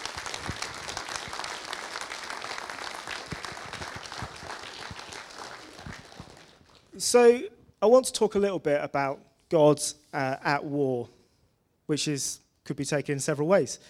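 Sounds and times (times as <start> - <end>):
audience applause: 0.0 - 6.9
speech: 7.0 - 11.2, 11.9 - 13.8.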